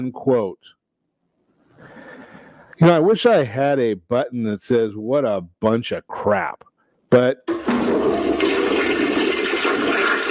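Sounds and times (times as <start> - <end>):
speech: 0.0 - 0.8, 2.8 - 8.3
toilet flush sound effect: 7.5 - 10.3.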